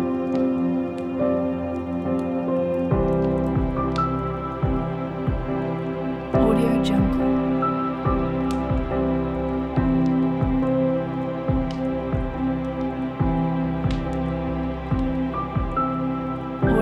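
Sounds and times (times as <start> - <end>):
nature ambience music: 0.0 - 16.8.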